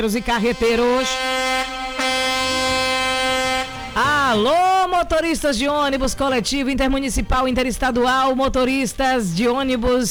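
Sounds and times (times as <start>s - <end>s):
speech: 0.0s - 1.5s, 4.0s - 10.0s
truck air horn blaring: 0.0s - 5.4s.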